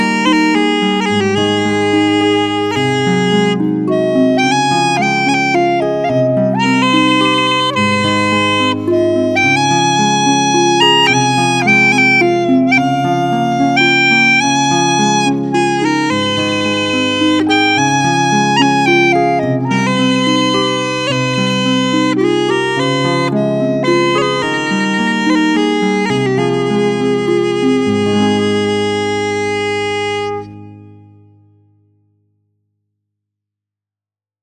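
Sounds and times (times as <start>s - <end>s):
uilleann pipes: 0.0s - 31.0s.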